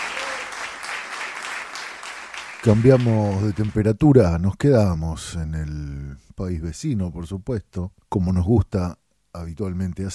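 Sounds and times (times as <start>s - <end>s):
audience applause: 0.0s - 3.8s
speech: 2.6s - 10.1s.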